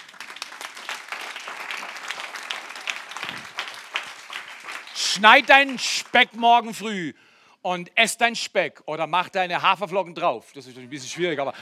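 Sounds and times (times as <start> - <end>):
big audience applause: 0.0 - 6.4
speech: 5.2 - 11.6.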